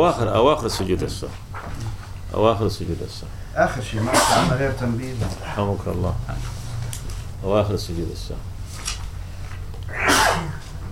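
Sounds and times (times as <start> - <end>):
speech: 0.0 - 1.6, 2.3 - 6.5, 7.4 - 8.5
low hum: 0.0 - 10.9
person sneezing during a religious lesson: 4.1 - 4.6, 9.9 - 10.8.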